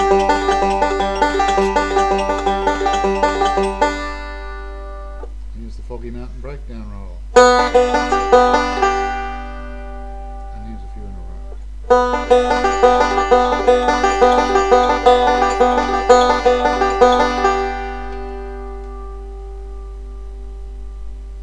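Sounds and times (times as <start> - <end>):
banjo playing basic rolls: 0.0 - 5.3, 7.3 - 19.4.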